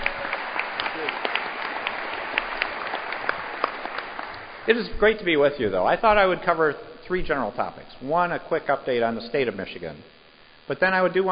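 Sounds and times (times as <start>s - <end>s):
applause: 0.0s - 4.7s
speech: 4.7s - 11.3s.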